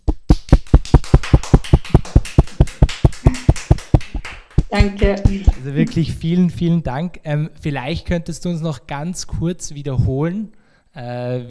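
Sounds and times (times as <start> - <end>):
small group clapping: 0.3 - 6.0
speech: 4.7 - 11.4.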